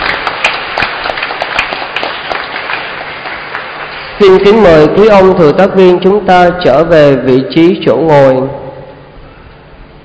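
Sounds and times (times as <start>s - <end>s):
audience applause: 0.0s - 4.2s
speech: 4.2s - 8.6s.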